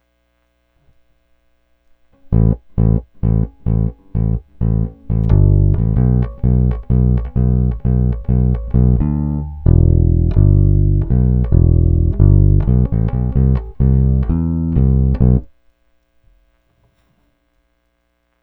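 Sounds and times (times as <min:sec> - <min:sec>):
bass: 0:02.1 - 0:15.7.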